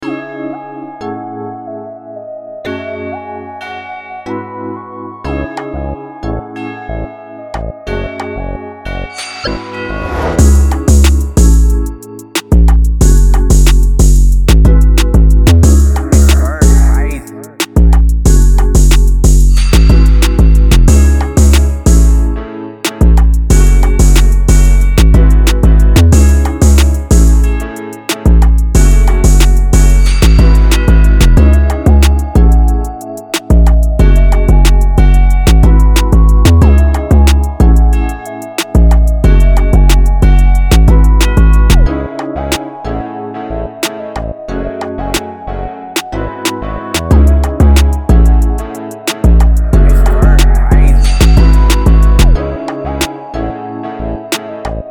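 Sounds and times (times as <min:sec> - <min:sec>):
jazz music in C minor: 0:07.5 - 0:42.6, 0:45.9 - 0:53.2.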